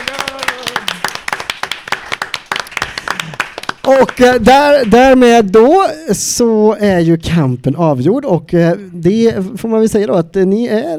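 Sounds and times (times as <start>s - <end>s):
audience applause: 0.0s - 4.9s
speech: 3.9s - 10.9s.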